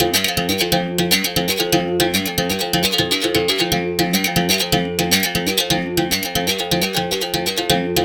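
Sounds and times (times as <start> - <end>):
samba rhythm at 120 bpm: 0.0 - 8.0.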